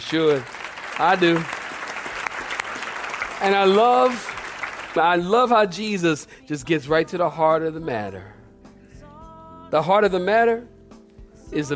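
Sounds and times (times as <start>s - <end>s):
speech: 0.0s - 1.6s, 3.4s - 4.3s, 5.0s - 8.4s, 9.7s - 10.7s, 11.5s - 11.7s
people clapping: 0.0s - 5.4s.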